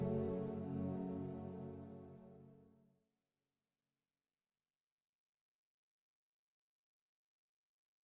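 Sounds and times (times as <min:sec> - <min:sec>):
strings: 0:00.0 - 0:02.7.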